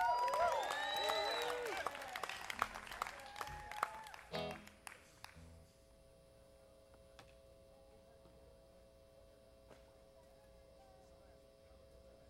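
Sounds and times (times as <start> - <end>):
scattered sharp claps: 0.0 - 5.4
crowd applauding and cheering to welcome a performer at a disc golf festival closing ceremony: 0.0 - 5.5.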